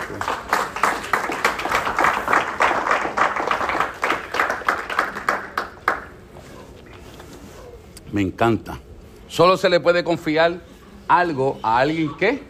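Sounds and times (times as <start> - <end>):
audience applause: 0.0 - 6.2
speech: 8.1 - 12.4.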